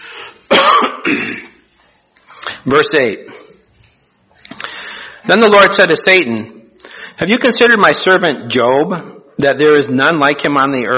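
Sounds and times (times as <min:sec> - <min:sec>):
rough forceful throat-clearing coughs: 0:00.5 - 0:01.6
speech: 0:01.0 - 0:01.5, 0:02.6 - 0:03.4, 0:05.2 - 0:06.6, 0:07.2 - 0:10.9.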